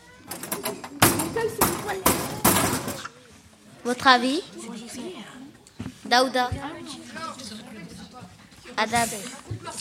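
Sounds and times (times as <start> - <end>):
school locker being banged: 0.3 - 3.1
speech: 3.9 - 4.6, 6.1 - 6.7, 8.8 - 9.7.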